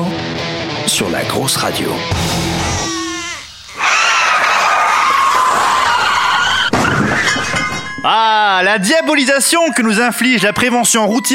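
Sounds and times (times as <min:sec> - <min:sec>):
speech: 0:00.9 - 0:02.8, 0:08.0 - 0:11.3
skidding tyres in a car accident sound effect: 0:02.4 - 0:07.9.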